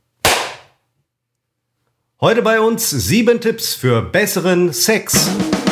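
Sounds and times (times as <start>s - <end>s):
single hand clap: 0.3s - 0.7s
speech: 2.2s - 5.6s.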